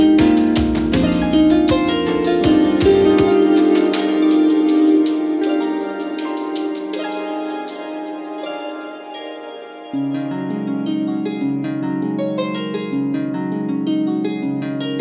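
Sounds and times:
chill beat: 0.0 - 10.0
harps playing: 0.0 - 14.9.

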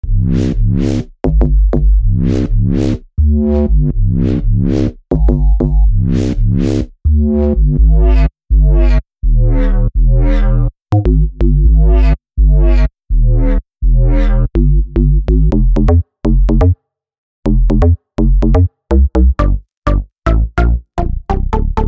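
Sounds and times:
bass loop: 0.0 - 16.8, 17.4 - 21.8.

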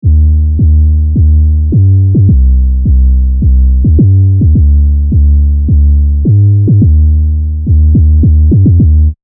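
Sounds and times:
Serum synth basses: 0.0 - 9.2.

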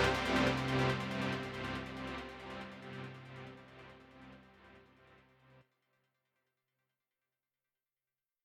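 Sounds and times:
sidechained EDM: 0.0 - 3.2.

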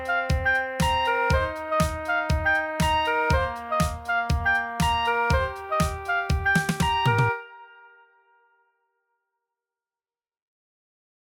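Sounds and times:
oboe: 0.0 - 8.2.

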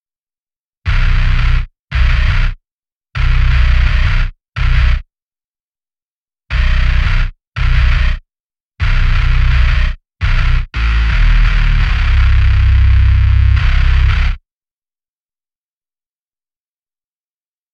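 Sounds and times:
bass: 0.9 - 2.6, 3.2 - 5.0, 6.5 - 8.2, 8.8 - 14.4.

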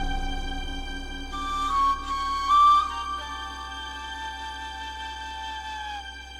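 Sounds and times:
desert wind blowing: 0.0 - 5.0.

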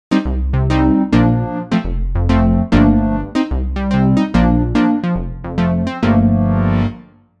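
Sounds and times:
synth pluck: 0.1 - 7.1.

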